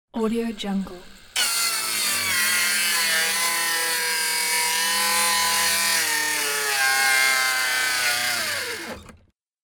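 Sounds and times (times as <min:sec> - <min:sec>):
circular saw cutting: 0:00.2 - 0:09.2.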